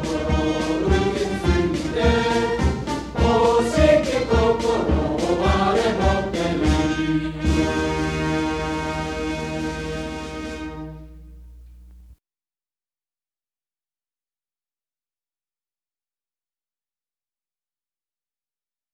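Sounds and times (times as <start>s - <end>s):
old cheer song: 0.0s - 10.4s.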